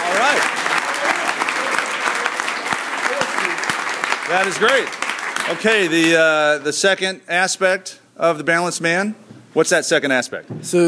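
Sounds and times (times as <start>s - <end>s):
round of applause: 0.0s - 6.7s
speech: 4.3s - 10.8s.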